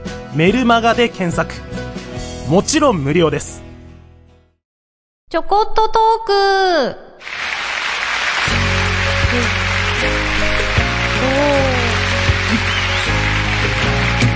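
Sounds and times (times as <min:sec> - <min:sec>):
speech: 0:00.4 - 0:01.8, 0:02.5 - 0:03.6, 0:05.3 - 0:07.4, 0:09.4 - 0:10.3
loud applause: 0:07.2 - 0:14.3.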